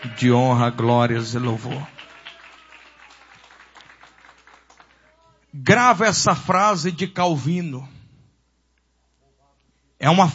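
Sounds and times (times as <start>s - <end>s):
audience applauding: 0.0s - 5.3s
speech: 0.1s - 2.0s, 5.5s - 8.0s, 10.0s - 10.3s.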